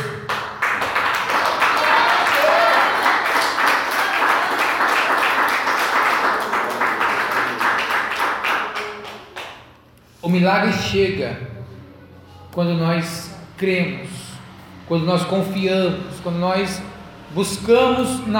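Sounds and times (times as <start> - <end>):
audience standing and applauding: 0.0 - 9.8
speech: 10.4 - 11.5, 12.5 - 14.2, 14.9 - 18.3.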